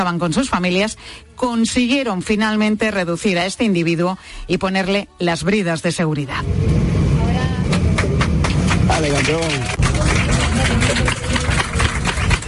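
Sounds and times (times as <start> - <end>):
speech: 0.0 - 7.0, 9.0 - 11.3
airplane passengers applauding after landing in Cancún: 7.6 - 12.4.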